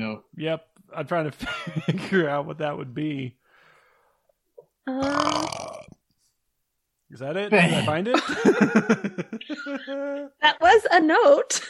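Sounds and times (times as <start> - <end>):
speech: 0.0 - 3.4, 4.8 - 5.9, 7.1 - 11.6
loud burp: 4.9 - 6.0
laughter: 7.7 - 10.3.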